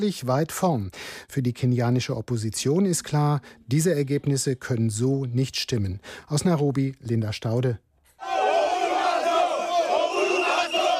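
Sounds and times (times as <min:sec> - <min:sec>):
speech: 0:00.0 - 0:08.3
angry protesters shouting and chanting: 0:08.2 - 0:10.9.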